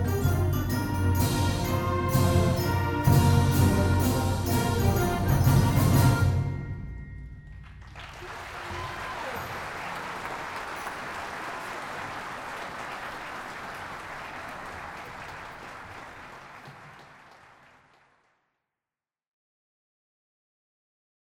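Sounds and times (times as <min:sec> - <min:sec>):
junior high band playing: 0:00.0 - 0:07.0, 0:07.9 - 0:11.8.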